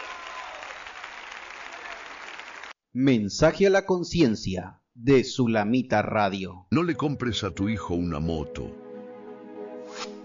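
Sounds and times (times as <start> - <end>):
crowd clapping: 0.0 - 2.8
speech: 2.9 - 8.8.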